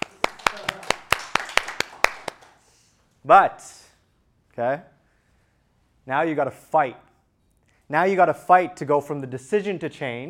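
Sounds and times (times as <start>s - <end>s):
audience clapping: 0.0s - 2.7s
speech: 3.2s - 3.8s, 4.6s - 4.9s, 6.1s - 7.1s, 7.9s - 10.2s.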